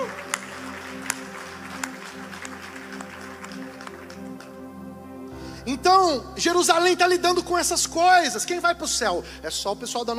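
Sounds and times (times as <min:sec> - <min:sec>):
applause: 0:00.0 - 0:04.7
speech: 0:05.7 - 0:10.1.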